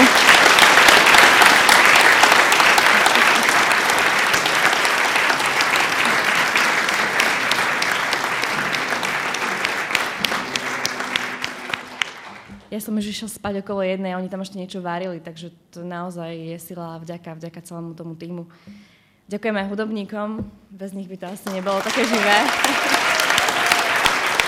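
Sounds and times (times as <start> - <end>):
large audience applause: 0.0 - 12.6, 21.4 - 24.4
speech: 12.8 - 23.0.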